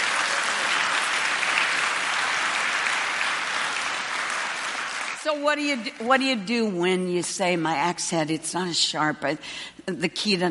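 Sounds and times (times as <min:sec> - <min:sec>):
audience clapping: 0:00.0 - 0:05.7
speech: 0:05.2 - 0:10.5.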